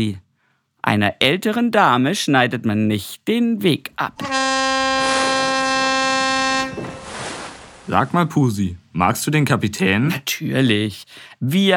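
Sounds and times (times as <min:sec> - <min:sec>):
speech: 0:00.0 - 0:00.2, 0:00.8 - 0:04.3, 0:07.9 - 0:11.7
ship's horn blast warning motorboats: 0:04.2 - 0:07.9.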